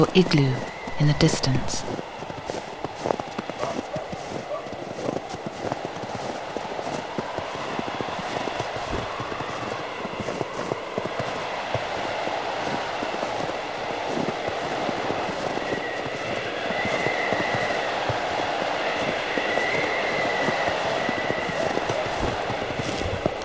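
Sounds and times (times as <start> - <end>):
speech: 0.0 - 2.0
footsteps walking across ice in snow: 1.9 - 23.4.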